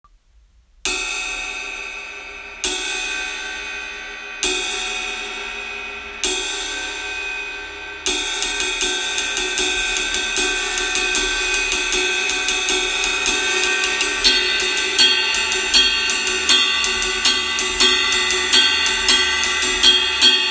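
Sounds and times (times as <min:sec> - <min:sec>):
moderate ride cymbal percussion: 0:00.8 - 0:20.4.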